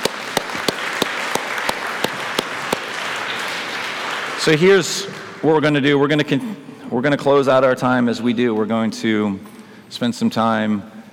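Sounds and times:
crowd applauding: 0.0s - 5.5s
speech: 4.4s - 11.0s.

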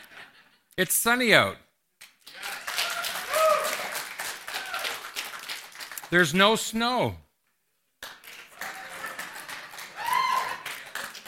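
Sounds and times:
speech: 0.8s - 1.6s, 6.1s - 7.2s
audience clapping: 2.0s - 6.3s, 8.0s - 11.2s.

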